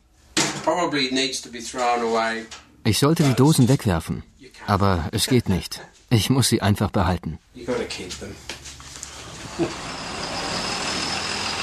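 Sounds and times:
speech: 0:00.7 - 0:08.6, 0:09.6 - 0:10.0
bus engine and road noise: 0:09.0 - 0:11.6.

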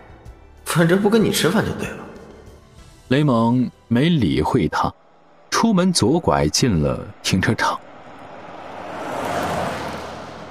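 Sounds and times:
speech: 0:00.7 - 0:02.1, 0:03.1 - 0:05.0, 0:05.6 - 0:07.8
car driving away: 0:07.1 - 0:10.4.

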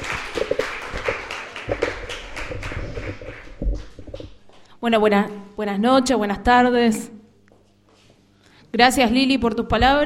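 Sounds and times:
audience applause: 0:00.0 - 0:03.6
speech: 0:04.8 - 0:07.2, 0:08.7 - 0:10.0.

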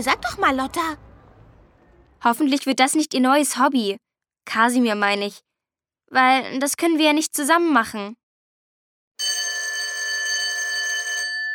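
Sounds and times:
speech: 0:00.0 - 0:01.1, 0:02.2 - 0:05.5, 0:06.1 - 0:08.2
school bell ringing: 0:09.2 - 0:11.5.

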